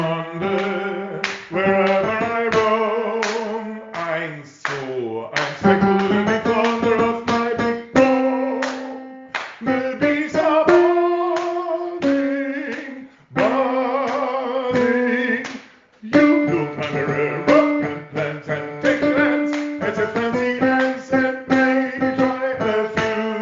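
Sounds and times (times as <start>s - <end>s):
tenor singing at tempo: 0.0s - 23.4s.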